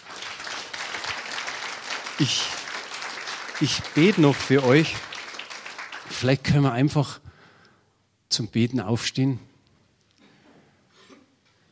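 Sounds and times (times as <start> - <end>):
applause: 0.0 - 7.1
speech: 2.2 - 2.6, 3.6 - 5.1, 6.2 - 7.2, 8.4 - 9.5.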